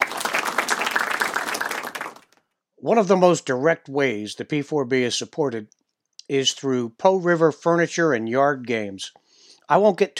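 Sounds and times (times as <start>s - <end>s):
golf clap, quiet polite applause: 0.0s - 2.4s
speech: 2.8s - 10.1s.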